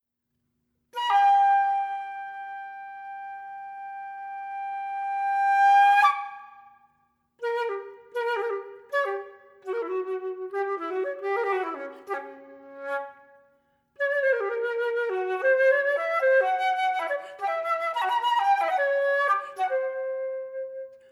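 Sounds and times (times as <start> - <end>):
flute playing: 1.0 - 6.8, 7.4 - 13.4, 14.0 - 21.0.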